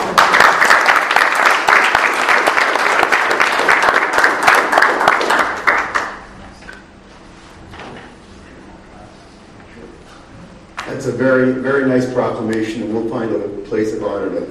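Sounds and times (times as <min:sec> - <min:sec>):
audience applause: 0:00.0 - 0:06.3
speech: 0:11.2 - 0:14.4.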